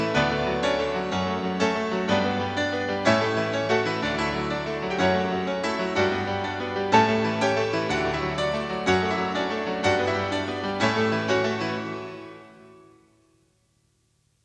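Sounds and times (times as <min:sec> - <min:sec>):
excited piano playing: 0:00.0 - 0:12.9.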